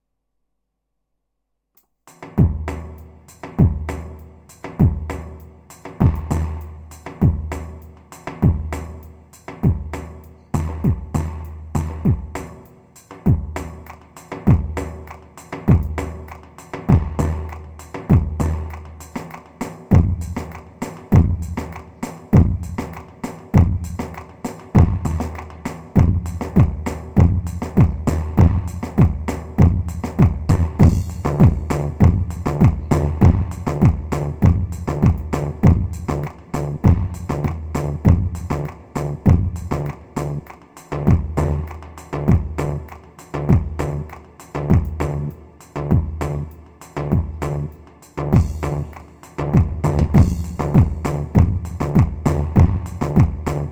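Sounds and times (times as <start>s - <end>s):
Elazig dik halay rhythms on a Korg Pa 500 keyboard: 2.0s - 53.7s.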